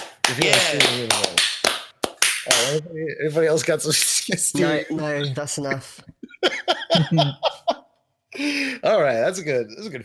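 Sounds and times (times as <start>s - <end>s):
clapping: 0.0s - 2.8s
speech: 0.3s - 1.5s, 2.4s - 7.6s, 8.4s - 10.0s
laughter: 6.2s - 8.0s.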